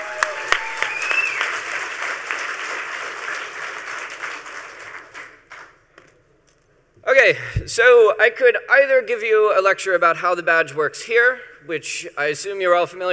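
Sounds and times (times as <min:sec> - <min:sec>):
whoop or whistle: 0:00.0 - 0:01.6
large crowd applauding: 0:00.0 - 0:05.8
speech: 0:07.2 - 0:13.1.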